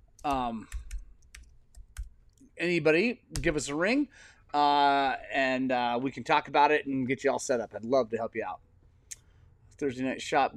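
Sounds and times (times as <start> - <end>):
speech: 0.2 - 0.8, 2.6 - 8.7, 9.8 - 10.5
computer keyboard keys tapping as a phone number is typed: 0.2 - 2.1.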